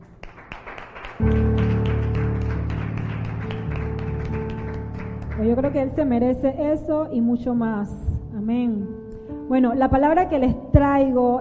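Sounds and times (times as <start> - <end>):
audience applause: 0.0 - 6.0
speech: 5.4 - 11.3.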